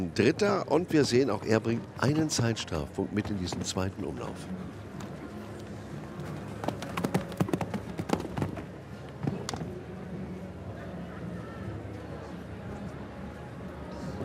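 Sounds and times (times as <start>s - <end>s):
speech: 0.0s - 4.8s
horse hooves galloping: 6.0s - 9.8s.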